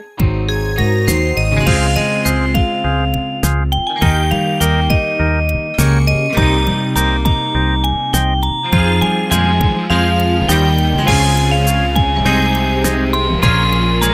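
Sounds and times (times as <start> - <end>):
karaoke singing: 0.3 - 14.1.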